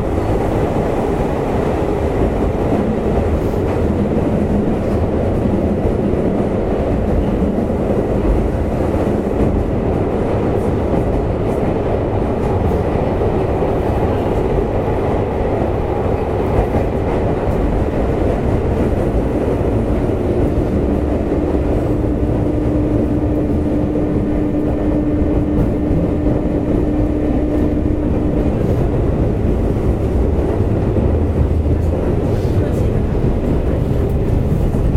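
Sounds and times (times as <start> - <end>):
JR West 201 series train running on the Yamatoji line: 0.0 - 34.9.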